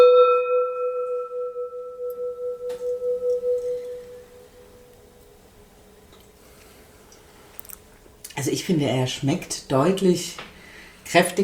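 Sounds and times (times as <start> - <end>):
gong being struck: 0.0 - 5.2
speech: 8.5 - 10.5, 11.1 - 11.4.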